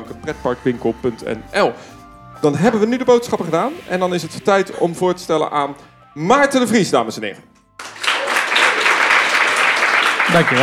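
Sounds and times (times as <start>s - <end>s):
speech: 0.1s - 7.5s, 10.3s - 10.6s
audience applause: 7.8s - 10.6s.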